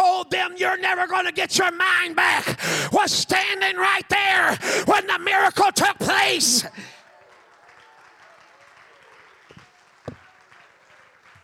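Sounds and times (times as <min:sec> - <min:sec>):
speech: 0:00.6 - 0:07.0
light polite golf clap: 0:07.0 - 0:11.4.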